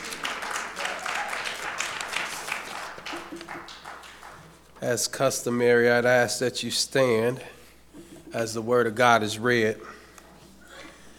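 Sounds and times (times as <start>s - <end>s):
audience clapping: 0.0s - 4.8s
speech: 4.8s - 7.6s, 8.4s - 10.0s.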